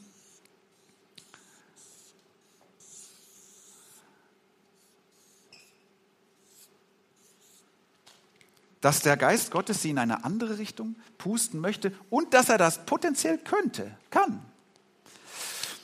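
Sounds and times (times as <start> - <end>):
pen or pencil scratching on paper drawing a sketch by hand: 0.0 - 4.0, 4.8 - 5.8, 6.4 - 7.7
speech: 8.8 - 14.5.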